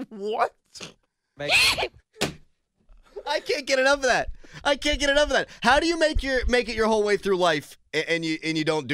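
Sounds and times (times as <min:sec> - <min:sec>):
speech: 0:00.1 - 0:02.0, 0:03.2 - 0:08.9
loud horse-like human sneeze: 0:00.8 - 0:02.0.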